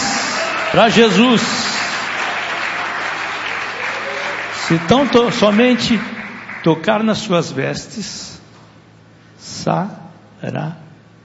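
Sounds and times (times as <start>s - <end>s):
congregation clapping in praise to God at a church service: 0.0s - 7.3s
speech: 0.7s - 1.7s, 4.7s - 8.3s, 9.6s - 10.8s.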